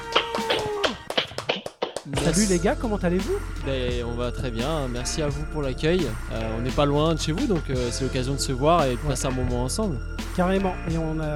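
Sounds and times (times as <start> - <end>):
scattered hand claps: 0.0 - 2.5
speech: 2.1 - 11.3.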